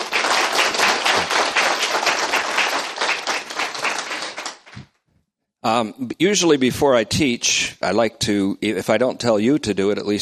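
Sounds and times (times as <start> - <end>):
crowd applauding: 0.0 - 4.8
speech: 5.6 - 10.1.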